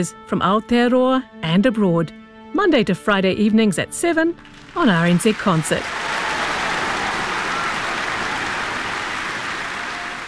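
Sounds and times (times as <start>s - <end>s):
speech: 0.0s - 6.1s
audience applause: 4.4s - 10.2s.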